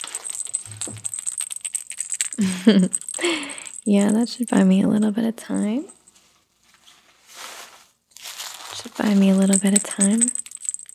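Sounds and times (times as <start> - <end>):
baby rattle being chewed and shaken: 0.0 - 6.1, 8.9 - 10.9
speech: 0.7 - 1.2, 2.4 - 6.0, 9.0 - 10.4.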